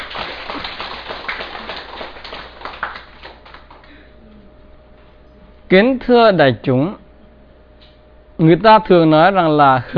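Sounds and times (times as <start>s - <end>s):
audience applause: 0.0s - 4.0s
speech: 5.7s - 7.0s, 8.4s - 9.9s.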